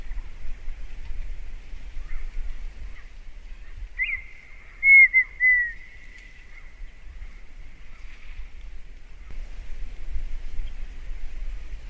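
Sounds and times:
partridge whistling: 4.0s - 6.3s.

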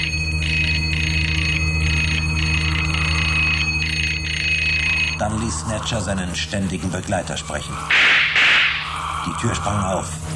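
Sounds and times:
doorbell ringing: 0.0s - 5.6s
speech: 5.2s - 8.4s, 9.2s - 10.3s.

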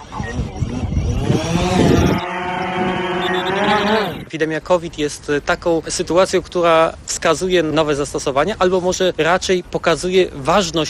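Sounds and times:
drone motors whirring as it lifts off: 0.0s - 4.3s
speech: 4.3s - 10.8s.

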